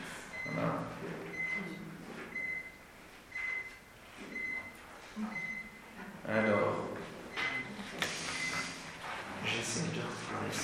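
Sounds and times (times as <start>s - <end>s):
low hum: 0.0s - 10.6s
carbon monoxide detector alarm beeping: 0.3s - 8.8s
speech: 0.5s - 1.9s.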